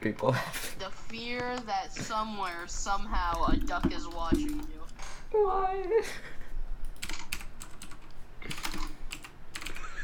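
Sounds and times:
speech: 0.0 - 6.4
typing on a computer keyboard: 2.4 - 4.9, 6.8 - 10.0.

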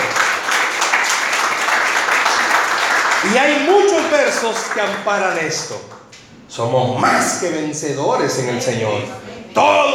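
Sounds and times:
audience applause: 0.0 - 5.8
speech: 3.2 - 9.9.

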